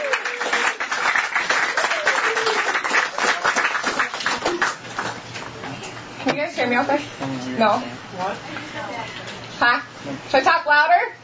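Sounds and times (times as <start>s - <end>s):
audience clapping to welcome newcomers: 0.0s - 5.6s
speech: 6.6s - 11.2s.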